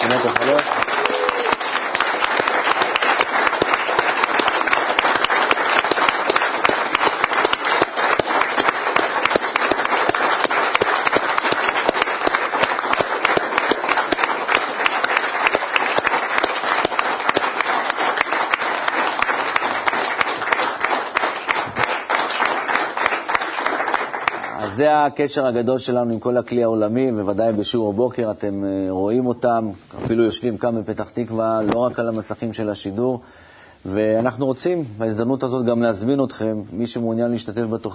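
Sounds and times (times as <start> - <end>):
studio audience applause: 0.0 - 24.7
speech: 0.1 - 0.9, 24.8 - 37.9.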